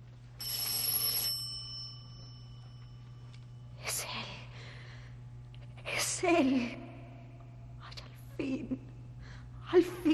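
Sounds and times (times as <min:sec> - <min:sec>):
low steady hum: 0:00.0 - 0:10.1
telephone ringing: 0:00.4 - 0:03.4
speech: 0:06.2 - 0:06.8.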